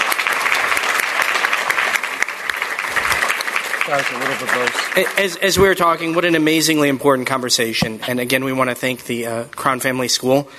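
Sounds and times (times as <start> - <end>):
audience applause: 0.0 - 6.2
speech: 3.9 - 10.5.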